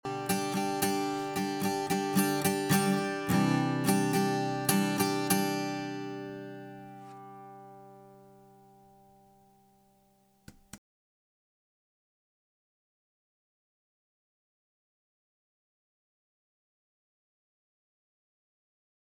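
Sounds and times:
guitar through SSL SiX and Shure microphone: 0.0 - 10.4.

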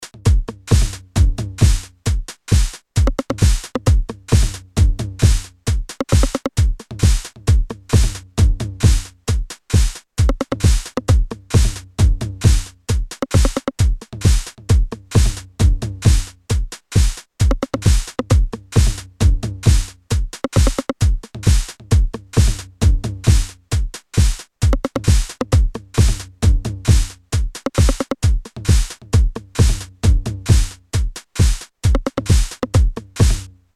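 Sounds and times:
AKAI MPC60 sampler beat: 0.0 - 16.7, 17.4 - 33.5.

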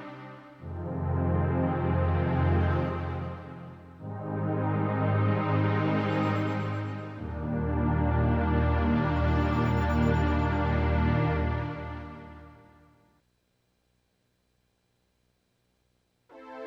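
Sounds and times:
synth: 0.6 - 12.7.

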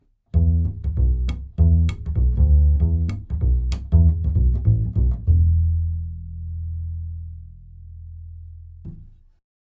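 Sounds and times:
upright bass: 0.3 - 9.2.

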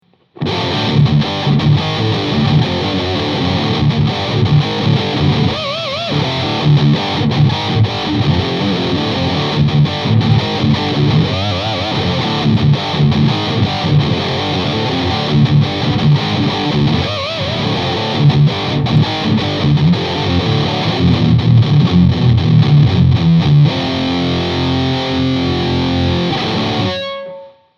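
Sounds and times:
Black Spirit 200 combo amplifier on high gain: 0.0 - 27.7.

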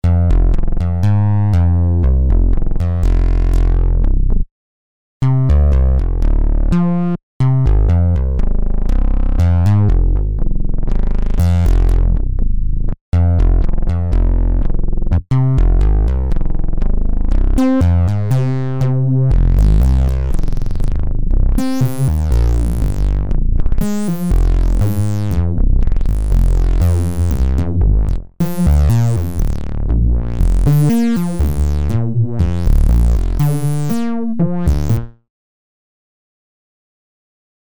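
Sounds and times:
FM309 synth bass: 0.0 - 4.5, 5.2 - 35.2.

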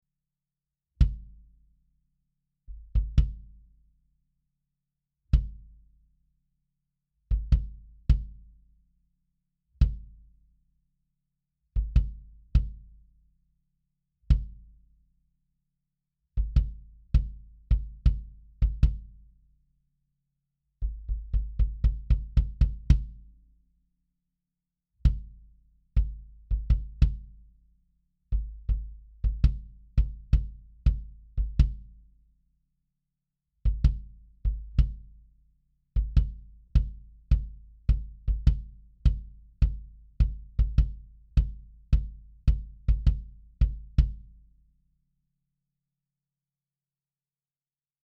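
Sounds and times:
classic kick drum: 1.0 - 1.5, 2.7 - 3.6, 5.3 - 5.8, 7.3 - 8.6, 9.8 - 10.3, 11.8 - 13.0, 14.3 - 14.7, 16.4 - 19.3, 20.8 - 23.3, 25.0 - 27.5, 28.3 - 32.1, 33.6 - 35.4, 36.0 - 44.4.

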